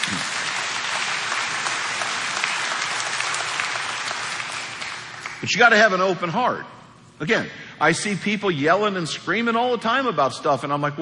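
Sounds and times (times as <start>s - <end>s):
large audience applause: 0.0s - 5.5s
speech: 5.4s - 10.9s.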